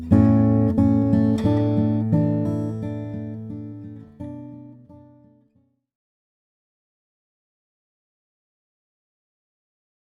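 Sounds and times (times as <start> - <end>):
Froggy Bottom G Limited acoustic guitar with Brazilian rosewood: 0.0 - 5.6.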